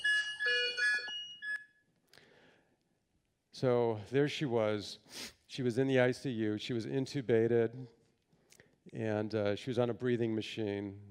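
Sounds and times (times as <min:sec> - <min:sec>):
hospital patient monitor alarm tones in ICU: 0:00.0 - 0:01.8
speech: 0:03.6 - 0:08.0, 0:08.9 - 0:11.0.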